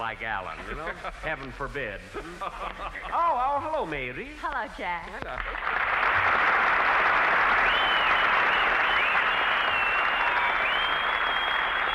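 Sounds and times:
speech: 0.0s - 6.3s
laughter: 0.5s - 3.6s
audience applause: 5.4s - 11.9s
whistles: 7.5s - 11.9s.

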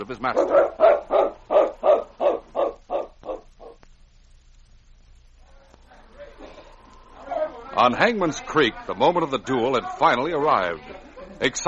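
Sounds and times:
speech: 0.0s - 1.1s, 7.8s - 11.6s
dog barking: 0.3s - 3.8s.

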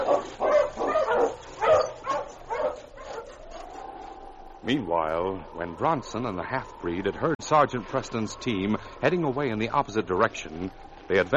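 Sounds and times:
husky barking and yipping: 0.0s - 4.2s
husky whining: 0.0s - 4.7s
speech: 4.7s - 11.3s.

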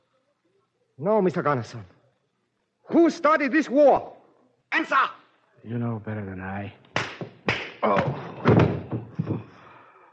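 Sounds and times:
speech: 1.0s - 1.9s, 2.9s - 6.8s, 7.8s - 9.1s
person knocked off, falling with a thud: 7.0s - 9.6s.

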